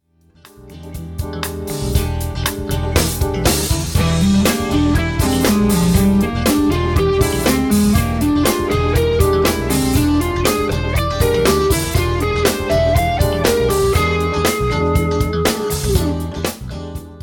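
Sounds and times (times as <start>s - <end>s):
guitar playing: 0.3s - 17.2s.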